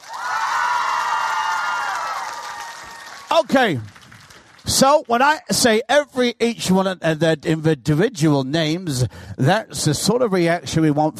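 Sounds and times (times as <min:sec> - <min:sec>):
audience cheering: 0:00.0 - 0:04.0
audience clapping: 0:00.0 - 0:05.5
speech: 0:03.3 - 0:04.0, 0:04.6 - 0:11.1.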